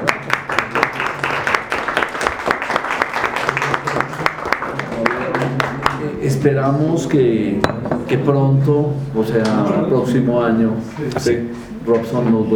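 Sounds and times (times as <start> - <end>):
audience applause: 0.0 - 6.0
speech: 6.2 - 12.5.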